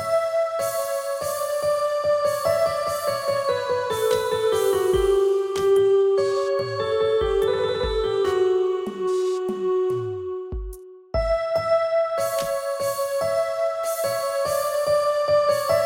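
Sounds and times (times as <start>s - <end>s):
keyboard: 0.0s - 15.8s.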